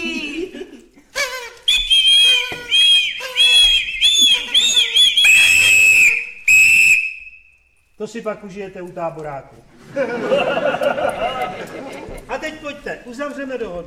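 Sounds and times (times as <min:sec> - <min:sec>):
laughter: 0:00.0 - 0:01.4, 0:09.7 - 0:12.7
party blower being blown: 0:01.1 - 0:07.2
speech: 0:08.1 - 0:13.8.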